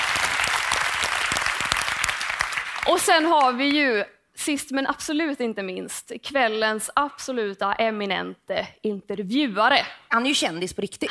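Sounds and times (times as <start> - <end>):
audience applause: 0.0 - 3.6
speech: 2.9 - 11.0.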